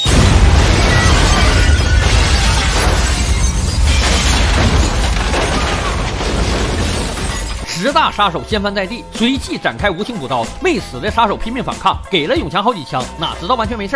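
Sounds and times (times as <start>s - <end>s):
bomb explosion: 0.0s - 7.6s
rumbling and crackling debris: 0.0s - 8.5s
speech: 7.8s - 13.9s.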